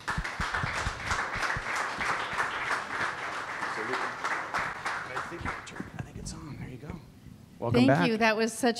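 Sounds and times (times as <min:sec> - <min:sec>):
audience applauding as a speaker is introduced: 0:00.0 - 0:06.5
speech: 0:07.6 - 0:08.7.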